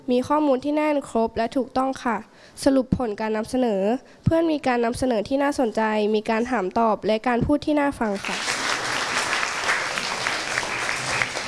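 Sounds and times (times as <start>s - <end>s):
speech: 0.1s - 8.6s
audience applause: 8.2s - 11.4s.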